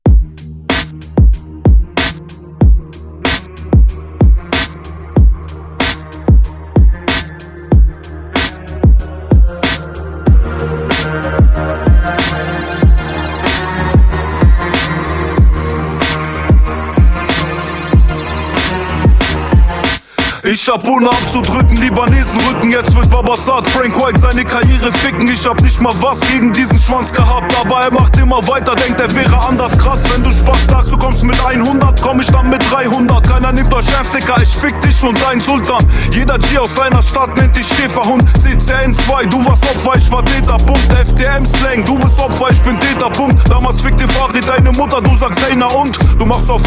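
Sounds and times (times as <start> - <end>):
heavy metal music: 0.1 - 46.6.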